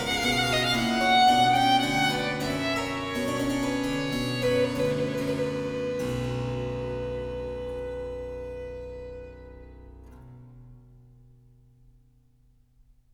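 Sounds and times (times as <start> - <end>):
harpsichord playing a largo sonata movement: 0.0 - 8.6
violin playing a largo sonata movement: 0.0 - 10.2.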